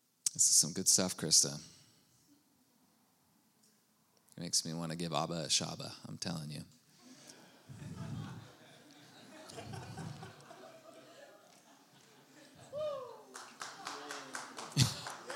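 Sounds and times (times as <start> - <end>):
speech: 0.4 - 1.7, 4.4 - 6.8
laughter: 7.0 - 15.3
audience clapping hands: 11.4 - 15.3.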